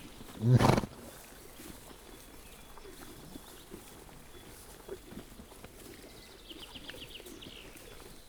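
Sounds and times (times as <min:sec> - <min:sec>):
pony snorting in a zoo: 0:00.3 - 0:01.1.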